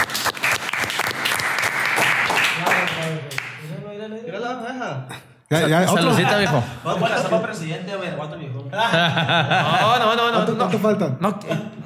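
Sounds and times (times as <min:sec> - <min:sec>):
audience applause: 0:00.0 - 0:03.7
speech: 0:05.0 - 0:11.8
laughter: 0:05.6 - 0:07.5, 0:08.7 - 0:10.7.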